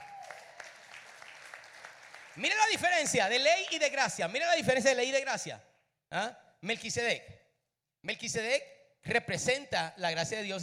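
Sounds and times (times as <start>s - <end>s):
audience applause: 0.0s - 2.7s
speech: 2.4s - 7.4s, 8.0s - 10.6s.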